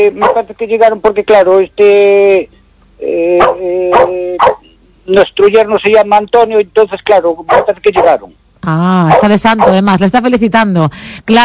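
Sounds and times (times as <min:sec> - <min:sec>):
speech: 0:00.0 - 0:11.4
dog barking: 0:00.2 - 0:00.5, 0:03.4 - 0:04.7, 0:07.5 - 0:08.2, 0:09.1 - 0:09.8
dog whimpering: 0:03.4 - 0:04.7.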